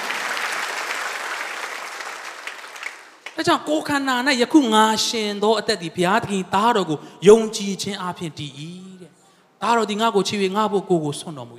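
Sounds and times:
congregation clapping hands in praise during a church sermon: 0.0s - 3.5s
speech: 3.4s - 8.9s, 9.6s - 11.5s.

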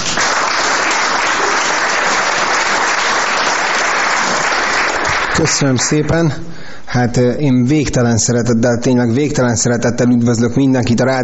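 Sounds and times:
audience applause: 0.0s - 5.6s
speech: 5.4s - 11.2s.

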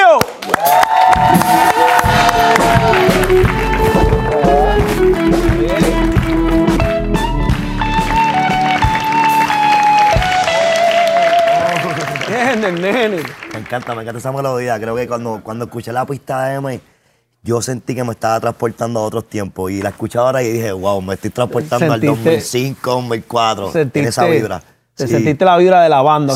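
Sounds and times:
audience applause: 0.2s - 14.5s
speech: 13.7s - 26.3s.

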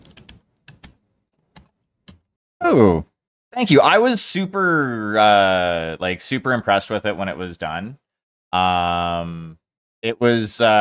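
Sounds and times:
soft typing on a computer keyboard: 0.0s - 2.2s
speech: 2.7s - 10.7s.

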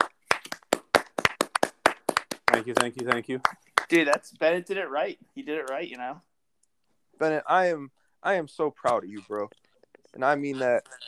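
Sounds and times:
people clapping hands: 0.0s - 4.4s
speech: 2.6s - 6.3s, 7.2s - 11.0s.

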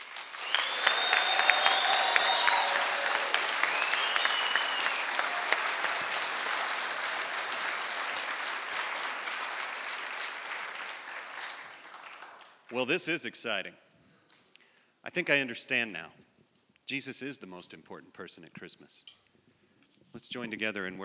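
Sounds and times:
loud audience applause: 0.0s - 12.8s
faint whistles: 0.2s - 6.4s
speech: 12.7s - 13.8s, 15.1s - 16.2s, 16.9s - 19.2s, 20.1s - 21.0s.

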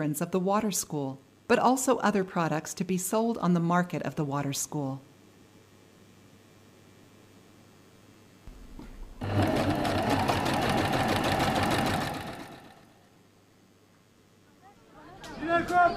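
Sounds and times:
speech: 0.0s - 5.1s
sewing machine rattling in tailoring workshop: 9.2s - 13.0s.

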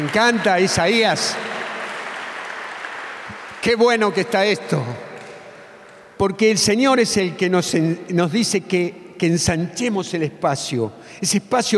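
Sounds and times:
speech: 0.0s - 1.6s, 3.6s - 5.1s, 6.2s - 11.7s
audience applause: 0.0s - 4.4s.

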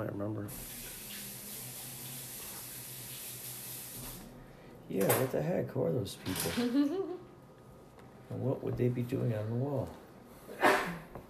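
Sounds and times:
speech: 0.0s - 1.0s, 4.9s - 7.2s, 8.3s - 10.0s
sneeze: 10.5s - 11.1s.

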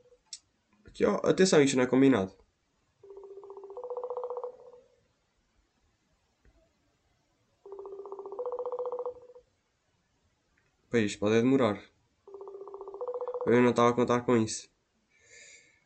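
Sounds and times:
speech: 1.0s - 2.4s, 10.9s - 12.0s, 13.5s - 14.7s
telephone line ringing tones as a call is placed: 3.0s - 4.9s, 7.6s - 9.4s, 12.3s - 13.8s.

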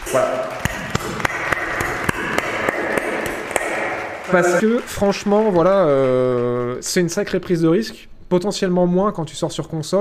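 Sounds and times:
hand clapping: 0.0s - 7.3s
speech: 0.1s - 1.2s, 4.3s - 9.9s.

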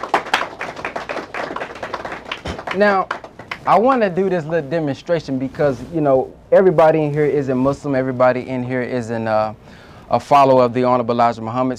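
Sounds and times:
crowd applauding: 0.0s - 3.8s
speech: 2.8s - 11.7s.

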